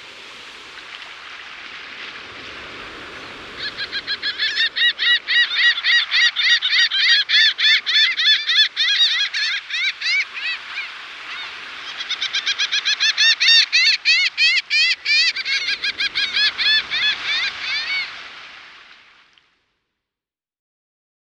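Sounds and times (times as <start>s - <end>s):
Laughing Gull calling in Guadeloupe: 3.1s - 18.3s.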